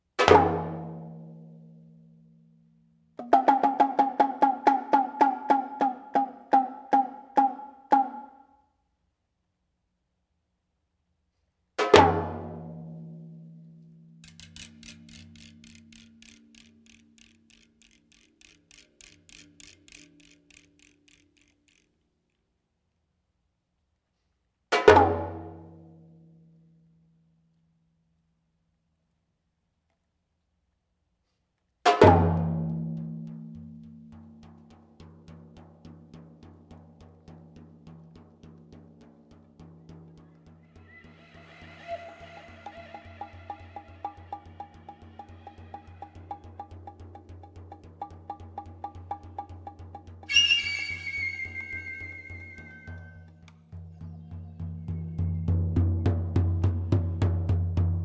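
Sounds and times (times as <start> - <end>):
percussion: 0.0 - 2.2, 3.2 - 8.5, 11.8 - 22.0, 24.7 - 25.9, 31.8 - 58.0.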